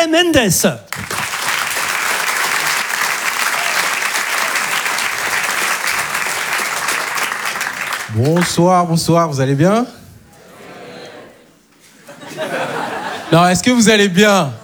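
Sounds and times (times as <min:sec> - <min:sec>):
speech: 0:00.0 - 0:01.2, 0:08.2 - 0:10.0, 0:13.3 - 0:14.6
audience applause in comedy club: 0:00.9 - 0:08.8
laughter: 0:10.0 - 0:13.7, 0:14.4 - 0:14.6.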